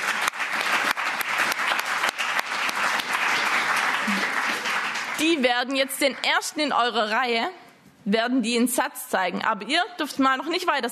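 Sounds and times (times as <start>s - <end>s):
audience clapping: 0.0s - 6.7s
speech: 5.2s - 10.9s.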